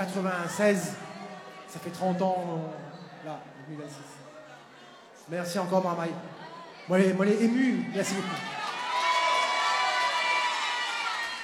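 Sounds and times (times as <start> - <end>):
speech: 0.1 - 1.1, 1.7 - 4.2, 5.3 - 8.6
audience applause: 8.1 - 11.4.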